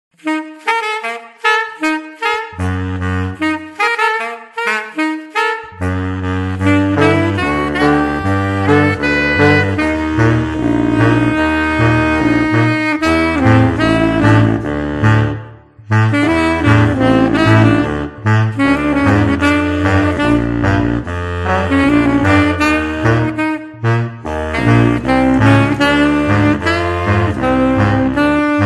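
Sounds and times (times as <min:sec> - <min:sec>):
saxophone: 0:00.1 - 0:28.6.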